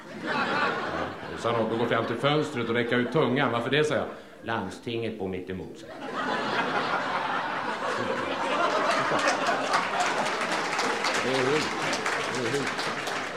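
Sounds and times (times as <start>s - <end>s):
laughter: 0.0s - 3.6s, 5.9s - 13.3s
speech: 1.4s - 6.4s
audience applause: 6.8s - 13.3s.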